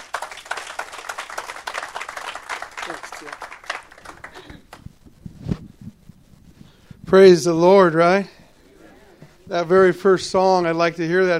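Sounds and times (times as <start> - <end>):
audience applause welcoming a pastor: 0.0 - 4.8
speech: 2.9 - 3.5, 7.1 - 8.4, 9.5 - 11.3.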